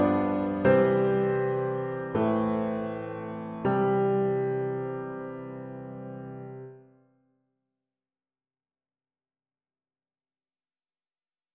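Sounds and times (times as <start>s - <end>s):
easy piano duet: 0.0s - 6.8s.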